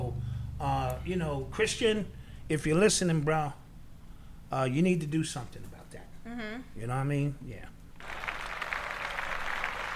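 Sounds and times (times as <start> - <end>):
speech: 0.6 - 3.6, 4.5 - 7.8
canned applause sound effect from clap button: 8.0 - 9.9.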